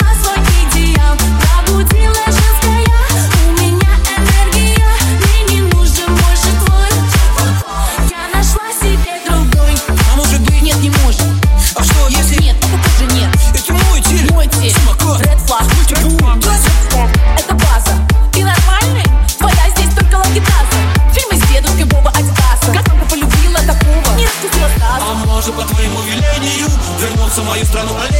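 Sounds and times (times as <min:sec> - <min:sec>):
remix music: 0:00.0 - 0:28.1.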